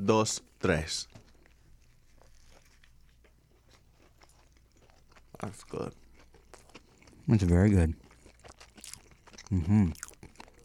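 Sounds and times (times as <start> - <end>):
speech: 0.0 - 1.2, 5.4 - 6.0, 7.3 - 8.0, 9.5 - 10.0
biting into crispy garlic parmesan chicken: 0.6 - 10.6.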